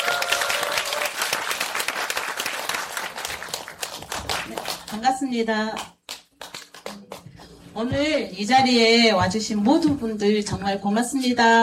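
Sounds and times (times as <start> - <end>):
audience applause: 0.0 - 5.0
speech: 4.9 - 5.9, 7.8 - 11.6.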